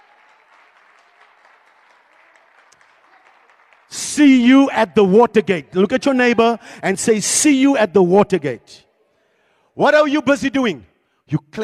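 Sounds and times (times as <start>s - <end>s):
audience clapping: 0.0s - 4.7s
speech: 4.2s - 8.9s, 9.8s - 11.6s.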